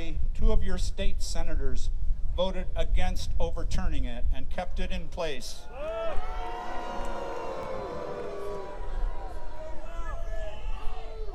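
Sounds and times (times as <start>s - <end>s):
speech: 0.4s - 6.3s
crowd booing: 5.7s - 11.3s.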